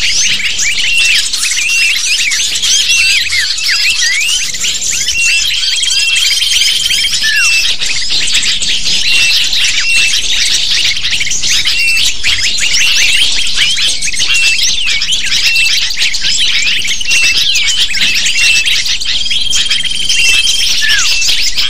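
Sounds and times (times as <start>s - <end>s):
crowd of lovebirds chirping and squeaking: 0.0s - 21.6s.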